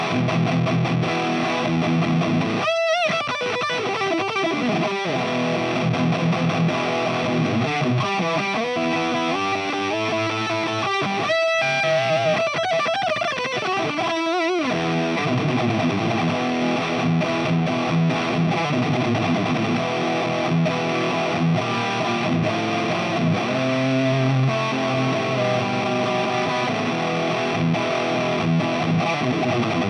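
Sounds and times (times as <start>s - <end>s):
bridge fuzz guitar: 0.0s - 29.8s.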